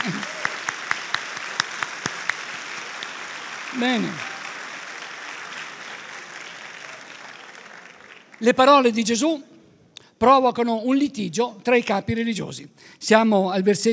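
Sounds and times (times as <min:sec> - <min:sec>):
audience applause: 0:00.0 - 0:08.5
speech: 0:03.8 - 0:04.3, 0:08.4 - 0:09.5, 0:10.2 - 0:13.9.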